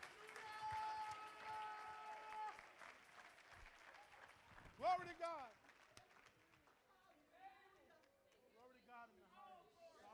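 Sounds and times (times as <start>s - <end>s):
audience clapping hands: 0.0s - 6.9s
speech: 4.8s - 5.6s.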